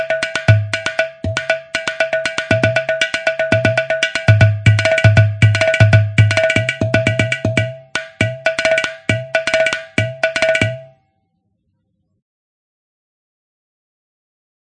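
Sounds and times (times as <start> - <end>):
ghatam grooves: 0.0 - 10.9.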